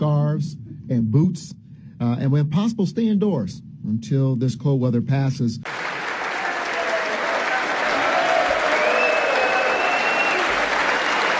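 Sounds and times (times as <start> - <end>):
speech: 0.4 - 6.1
applause and crowd noise welcoming Ukrainian President Volodymyr Zelensky at a joint meeting of Congress: 5.7 - 11.3.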